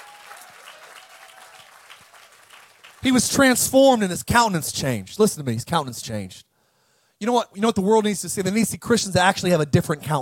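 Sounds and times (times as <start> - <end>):
sparse hand clapping: 0.0 - 3.1
speech: 3.0 - 6.5, 7.2 - 10.2.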